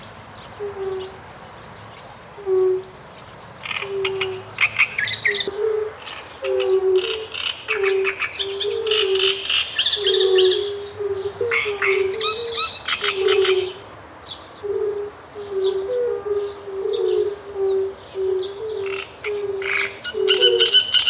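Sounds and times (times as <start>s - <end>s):
great reed warbler singing: 0.0s - 21.0s.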